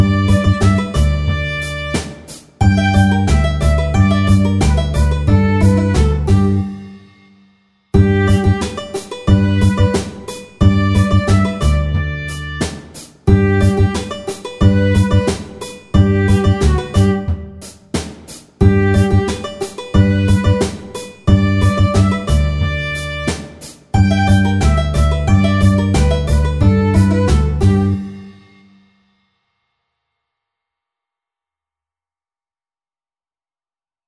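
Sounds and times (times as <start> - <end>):
bluegrass music: 0.0 - 7.0, 8.0 - 17.7, 18.6 - 28.2.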